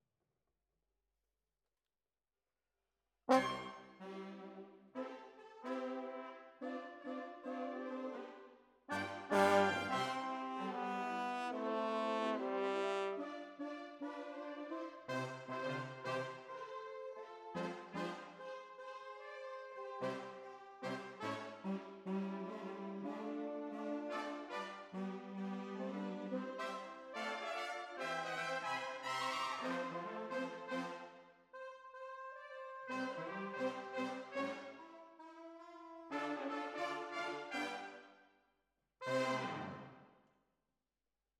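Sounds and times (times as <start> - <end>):
horns: 3.3 - 38.0, 39.0 - 40.0.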